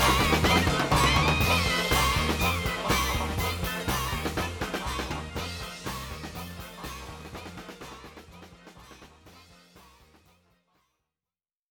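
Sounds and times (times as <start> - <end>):
Christmas song: 0.0 - 8.1.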